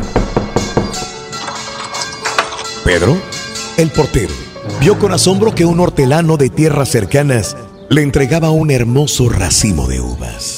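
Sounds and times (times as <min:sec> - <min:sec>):
knocking on a door: 0:00.0 - 0:01.0
speech: 0:02.9 - 0:10.5.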